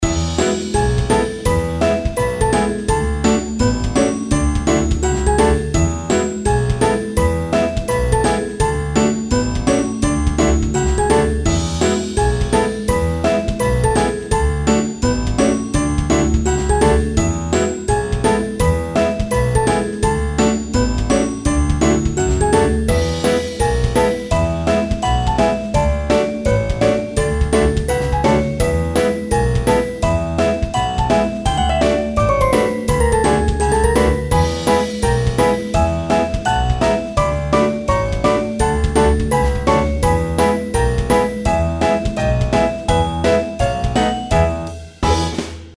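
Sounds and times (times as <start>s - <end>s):
background music: 0.0s - 45.7s.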